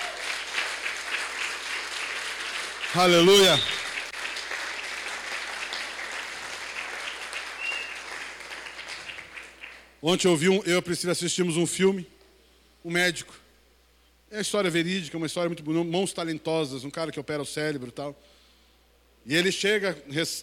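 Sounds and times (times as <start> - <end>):
audience applause: 0.0 - 9.9
speech: 3.0 - 3.8, 10.0 - 12.2, 12.8 - 13.4, 14.3 - 18.4, 19.2 - 20.4.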